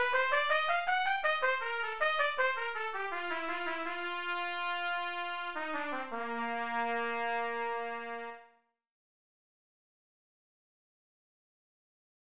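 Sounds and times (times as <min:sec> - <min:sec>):
trumpet: 0:00.0 - 0:08.6.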